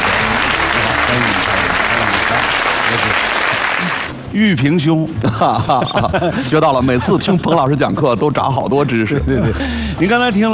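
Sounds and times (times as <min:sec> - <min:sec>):
audience applause welcoming a Communication University of China professor: 0:00.0 - 0:04.2
speech: 0:04.4 - 0:10.5
laughter: 0:05.2 - 0:07.8.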